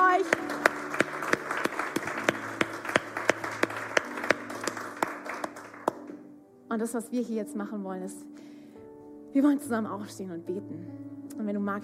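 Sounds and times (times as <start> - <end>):
audience applause: 0.0 - 6.2
speech: 6.8 - 8.4, 9.3 - 11.8.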